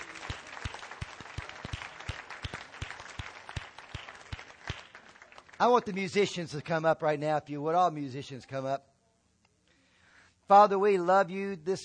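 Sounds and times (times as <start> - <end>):
audience applause: 0.0 - 6.2
speech: 5.6 - 8.9, 10.5 - 11.8.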